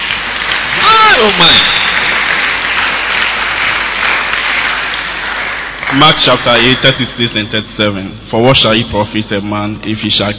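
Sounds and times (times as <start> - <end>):
audience clapping: 0.0 - 7.6
speech: 1.2 - 1.8, 6.0 - 10.3.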